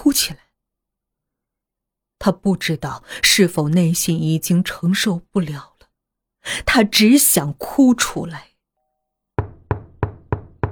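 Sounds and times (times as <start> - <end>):
speech: 0.0 - 0.4, 2.2 - 5.7, 6.4 - 8.5
soft knocking on a door: 9.4 - 10.7.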